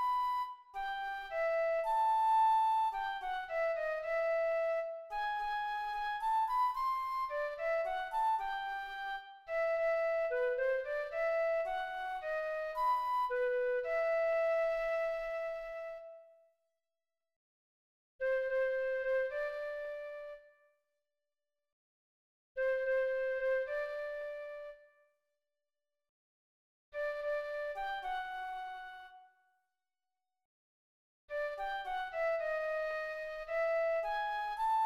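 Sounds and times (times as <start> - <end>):
flute: 0.0 - 16.5, 18.2 - 20.8, 22.6 - 25.1, 27.0 - 29.4, 31.3 - 34.8.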